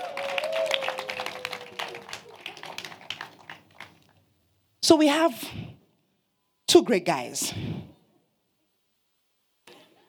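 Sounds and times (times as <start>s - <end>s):
audience clapping: 0.0s - 4.2s
speech: 4.9s - 5.6s, 6.7s - 7.8s.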